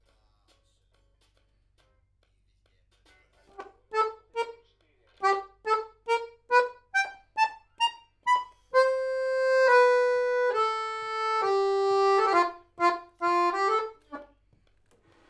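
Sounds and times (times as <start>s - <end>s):
accordion: 3.5s - 4.6s, 5.2s - 14.4s.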